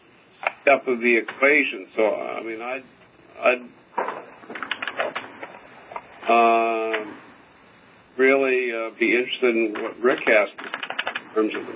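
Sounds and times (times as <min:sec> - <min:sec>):
speech: 0:00.7 - 0:03.8, 0:06.3 - 0:07.2, 0:08.2 - 0:10.8, 0:11.4 - 0:11.7
computer keyboard typing on a call: 0:04.5 - 0:05.3, 0:09.8 - 0:11.3.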